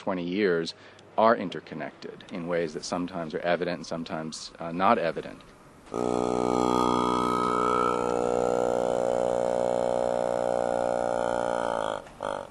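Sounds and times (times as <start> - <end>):
speech: 0.0 - 7.7
motorized plastic-bottle mouth mimicking Tuvan throat singing, buzzing drone: 5.9 - 12.4.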